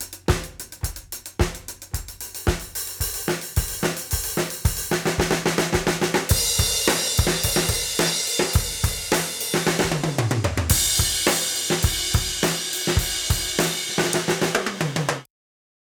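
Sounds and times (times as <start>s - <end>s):
Sonor drums: 0.0s - 15.3s.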